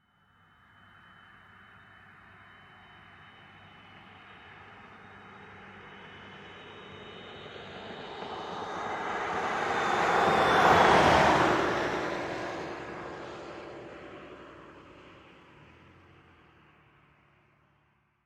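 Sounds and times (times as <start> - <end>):
car passing by: 7.0 - 16.9.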